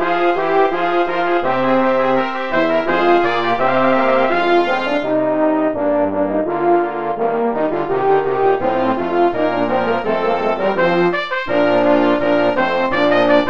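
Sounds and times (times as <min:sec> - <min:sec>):
brass quintet of trumpets, horn, baritone and trombone playing a rondeau: 0:00.0 - 0:13.4.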